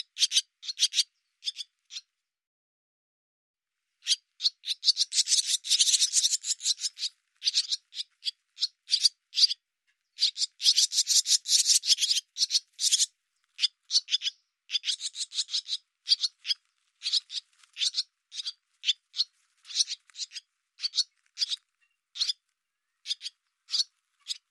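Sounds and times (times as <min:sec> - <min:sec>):
bird chattering: 0:00.0 - 0:02.1, 0:04.0 - 0:09.6, 0:10.2 - 0:22.4, 0:23.0 - 0:24.4.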